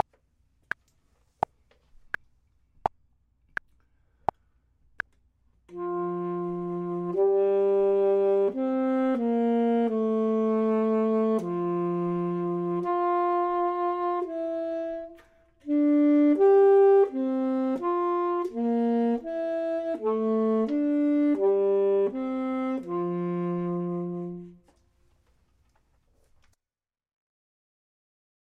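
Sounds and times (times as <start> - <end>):
clarinet: 5.7 - 24.9
saxophone: 5.7 - 24.9.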